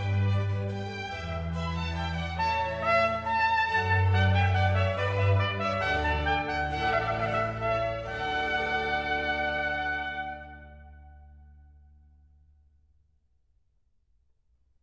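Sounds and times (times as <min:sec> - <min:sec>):
baroque duet: 0:00.0 - 0:11.6.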